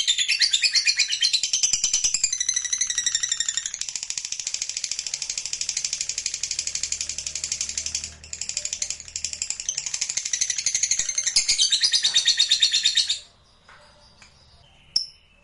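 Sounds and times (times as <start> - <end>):
lovebird chattering: 0.0 - 13.4.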